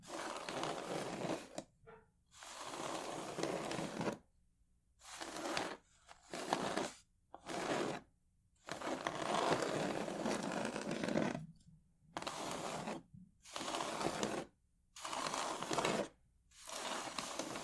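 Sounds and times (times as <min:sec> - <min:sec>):
scratching and rubbing on wooden triggers: 0:00.0 - 0:01.6, 0:02.4 - 0:04.2, 0:05.1 - 0:08.0, 0:08.6 - 0:11.4, 0:12.2 - 0:17.6.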